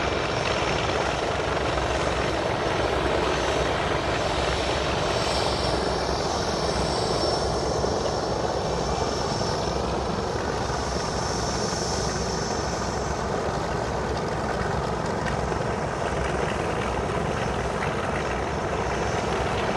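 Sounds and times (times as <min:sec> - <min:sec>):
Lockheed L-1049 Super Constellation aircraft preflight: 0:00.0 - 0:19.7.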